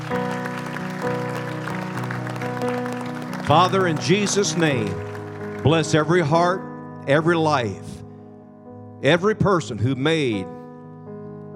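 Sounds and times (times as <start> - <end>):
church audience hand clapping: 0.0 - 6.5
speech: 3.5 - 7.9, 9.0 - 10.6.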